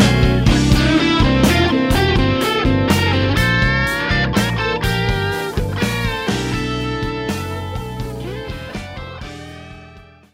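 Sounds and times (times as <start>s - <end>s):
high arpeggio: 0.0s - 10.0s.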